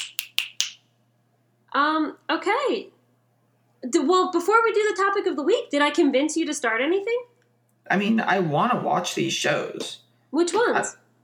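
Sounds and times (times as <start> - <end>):
finger snap: 0.0 - 0.8
speech: 1.8 - 3.0, 3.8 - 7.3, 7.9 - 11.0.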